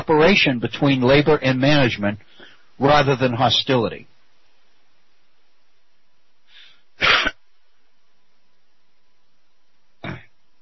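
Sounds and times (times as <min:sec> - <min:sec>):
speech: 0:00.0 - 0:04.1
throat clearing: 0:07.0 - 0:07.4, 0:10.0 - 0:10.4.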